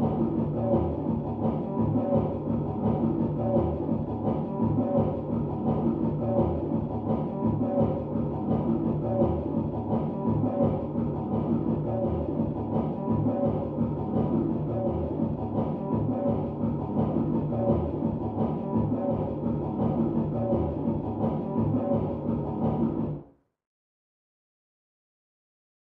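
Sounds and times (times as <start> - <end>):
electronic dance music: 0.0 - 23.2.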